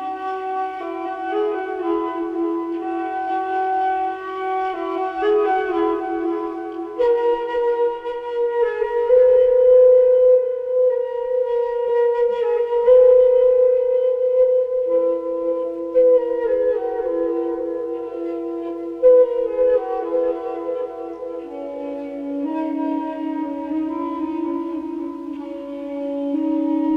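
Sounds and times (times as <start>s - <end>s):
flute music: 0.0s - 26.9s.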